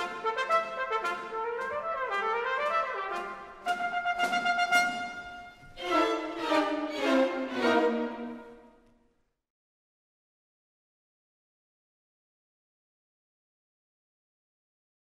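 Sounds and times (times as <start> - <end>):
trumpet: 0.0 - 8.8.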